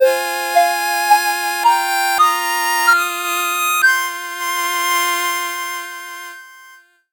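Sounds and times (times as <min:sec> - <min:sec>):
slow 8-bit jingle: 0:00.0 - 0:05.0.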